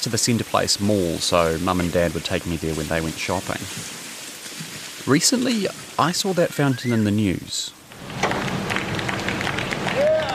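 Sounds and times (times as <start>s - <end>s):
speech: 0.0s - 4.0s, 5.1s - 8.3s
crowd applauding at statue removal: 8.0s - 10.3s.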